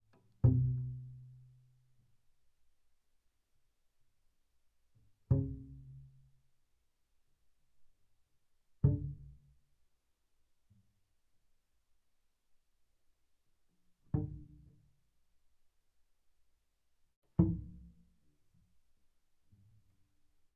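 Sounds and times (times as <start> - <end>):
double bass pizzicato on E string: 0.3 - 1.7, 5.3 - 6.3, 8.8 - 9.5, 14.1 - 14.7, 17.3 - 18.2.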